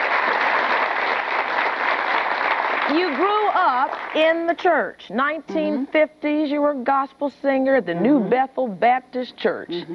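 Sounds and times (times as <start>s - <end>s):
audience applause: 0.0s - 4.2s
speech: 2.9s - 9.9s.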